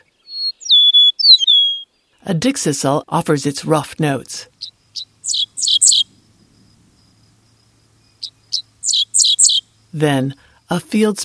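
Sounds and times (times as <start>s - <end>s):
eastern meadowlark whistling song: 0.0s - 2.0s, 4.6s - 6.1s, 8.0s - 9.7s
speech: 2.2s - 5.1s, 10.0s - 11.2s.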